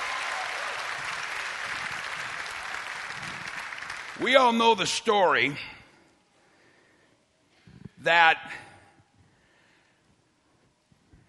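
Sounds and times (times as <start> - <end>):
audience clapping: 0.0 - 4.6
speech: 4.2 - 5.8, 8.0 - 8.6.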